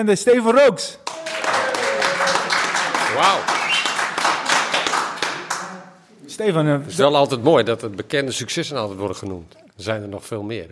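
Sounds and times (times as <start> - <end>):
speech: 0.0 - 1.2, 3.1 - 3.6, 6.4 - 10.7
live audience applause: 1.0 - 5.9.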